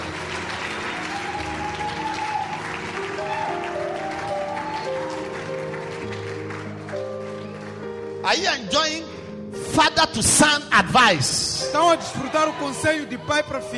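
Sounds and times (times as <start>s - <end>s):
congregation clapping for Jesus during a bilingual English-Portuguese sermon: 0.0s - 8.4s
speech: 8.3s - 9.1s, 9.8s - 13.7s.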